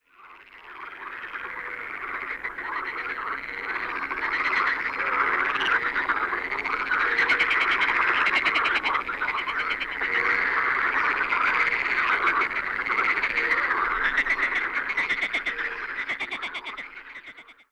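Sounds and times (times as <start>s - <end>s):
animal voices: 0.1s - 17.7s.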